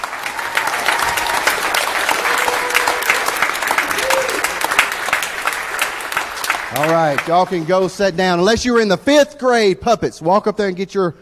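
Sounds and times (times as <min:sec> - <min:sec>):
audience applause: 0:00.0 - 0:08.4
speech: 0:07.0 - 0:11.2.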